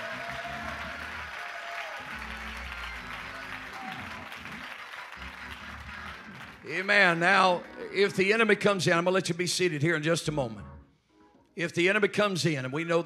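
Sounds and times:
audience clapping hands: 0:00.0 - 0:08.5
speech: 0:06.7 - 0:10.7, 0:11.6 - 0:13.0.

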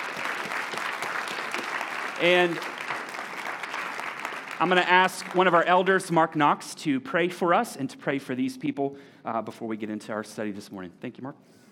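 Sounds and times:
round of applause: 0:00.0 - 0:05.9
speech: 0:02.2 - 0:02.7, 0:04.6 - 0:11.6.

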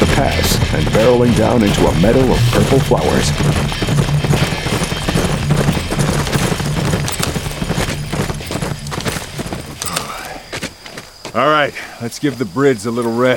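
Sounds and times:
squad of horses galloping through a mountain pass: 0:00.0 - 0:13.3
speech: 0:00.2 - 0:04.5, 0:11.4 - 0:13.3.

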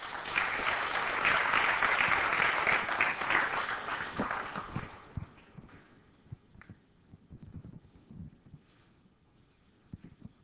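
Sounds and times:
round of applause: 0:00.0 - 0:05.5.

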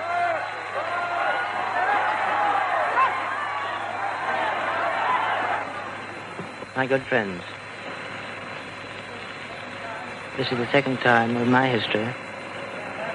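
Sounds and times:
crowd murmuring and shushing: 0:00.1 - 0:06.8
speech: 0:06.8 - 0:07.6, 0:10.4 - 0:12.2.

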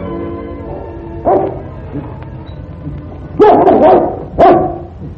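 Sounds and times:
dog barking: 0:00.7 - 0:01.7, 0:03.4 - 0:05.0.

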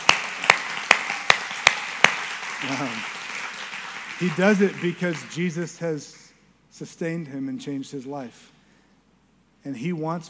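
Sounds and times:
audience applause: 0:00.0 - 0:05.7
speech: 0:02.6 - 0:03.1, 0:04.2 - 0:06.2, 0:06.8 - 0:08.6, 0:09.6 - 0:10.2.

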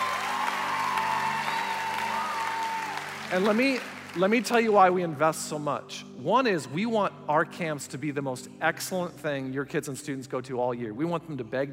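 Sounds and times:
audience cheering: 0:00.0 - 0:04.2
audience applause: 0:00.0 - 0:04.8
speech: 0:03.3 - 0:11.7.

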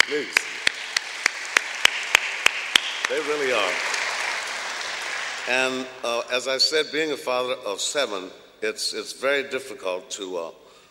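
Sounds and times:
slow rhythmic clapping: 0:00.0 - 0:05.9
speech: 0:03.1 - 0:04.0, 0:05.5 - 0:10.6.

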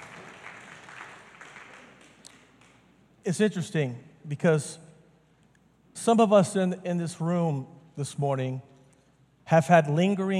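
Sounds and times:
audience clapping: 0:00.0 - 0:03.0
speech: 0:03.2 - 0:04.8, 0:06.0 - 0:08.7, 0:09.5 - 0:10.3.

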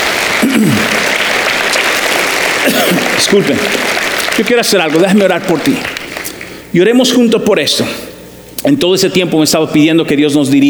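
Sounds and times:
applause for the Lord during a church service: 0:00.0 - 0:06.7
speech: 0:00.6 - 0:01.0, 0:02.6 - 0:05.9, 0:06.7 - 0:10.6.

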